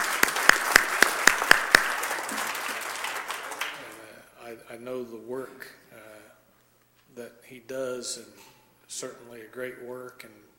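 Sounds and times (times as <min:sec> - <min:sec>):
audience applause: 0:00.0 - 0:04.0
speech: 0:07.2 - 0:10.5.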